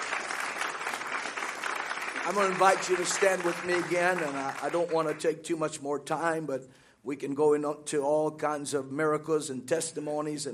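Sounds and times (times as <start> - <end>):
audience applause: 0.0 - 5.3
speech: 2.3 - 10.5.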